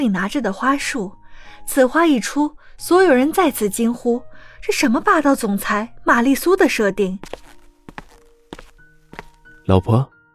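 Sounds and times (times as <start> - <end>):
speech: 0.0 - 7.6, 9.7 - 10.1
footsteps walking up and stopping: 7.2 - 9.6.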